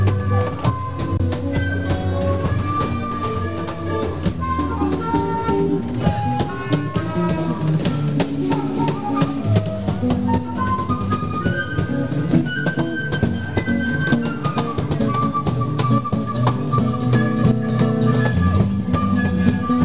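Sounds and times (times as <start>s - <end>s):
jazz band playing: 0.0s - 19.8s.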